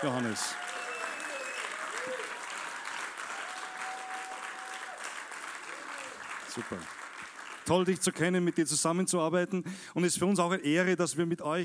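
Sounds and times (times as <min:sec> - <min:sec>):
speech: 0:00.0 - 0:00.8, 0:06.6 - 0:07.0, 0:07.7 - 0:11.6
audience applause: 0:00.0 - 0:08.6.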